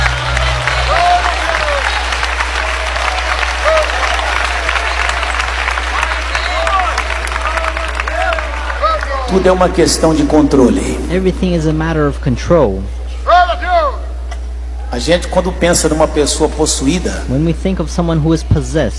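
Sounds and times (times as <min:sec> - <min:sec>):
church congregation clapping in praise during a service: 0:00.0 - 0:11.0
low hum: 0:00.0 - 0:18.9
speech: 0:09.4 - 0:13.0, 0:15.0 - 0:18.9.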